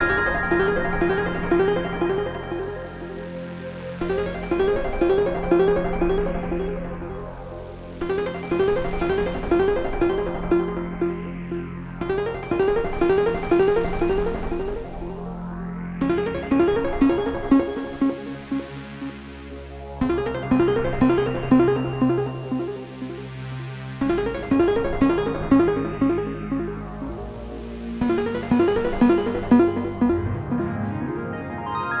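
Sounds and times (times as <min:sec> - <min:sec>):
synths: 0:00.0 - 0:31.9.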